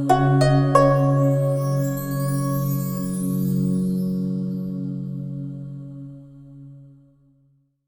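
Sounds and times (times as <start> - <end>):
Asian style logo jingle: 0.1 - 5.2.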